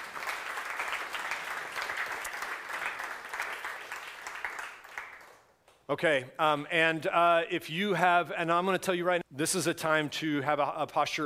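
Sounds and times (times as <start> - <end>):
audience applause for educators: 0.0 - 5.4
speech: 5.9 - 11.2.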